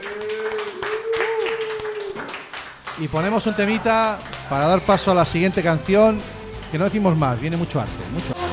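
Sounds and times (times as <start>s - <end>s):
applause: 0.0s - 5.0s
speech: 3.0s - 8.4s.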